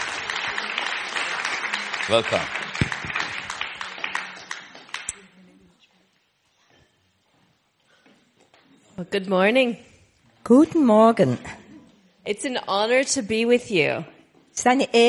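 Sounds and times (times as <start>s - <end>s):
audience applause: 0.0s - 5.1s
speech: 2.1s - 3.0s, 9.0s - 9.9s, 10.5s - 11.6s, 12.2s - 15.0s.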